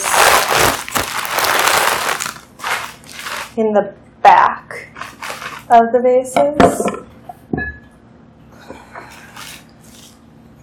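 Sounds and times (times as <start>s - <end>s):
greens being cut open crunching: 0.0s - 3.6s
speech: 3.6s - 4.9s, 5.7s - 7.0s.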